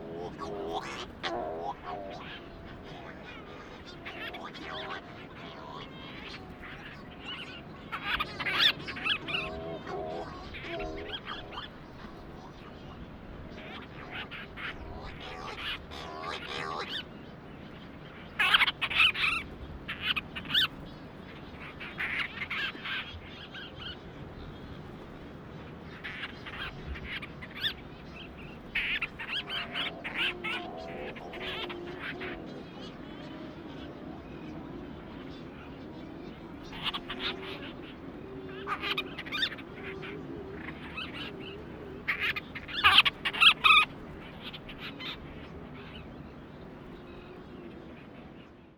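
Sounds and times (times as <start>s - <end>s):
Monteiro's storm petrel calling: 0.0s - 47.7s.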